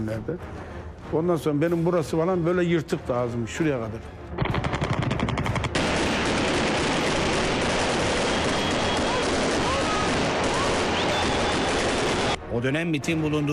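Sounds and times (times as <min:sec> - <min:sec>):
speech: 0:00.0 - 0:04.6, 0:12.6 - 0:13.5
gunfire barrage from a helicopter: 0:04.4 - 0:12.4.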